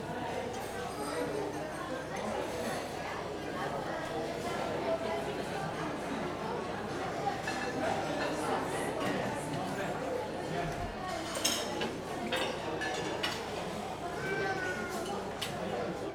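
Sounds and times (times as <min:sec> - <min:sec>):
busy dining room: 0:00.0 - 0:16.1.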